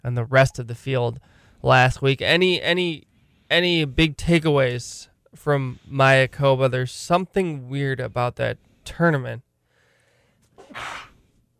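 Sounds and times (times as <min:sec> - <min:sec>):
speech: 0:00.0 - 0:09.5, 0:10.6 - 0:11.1
sneeze: 0:10.6 - 0:11.2.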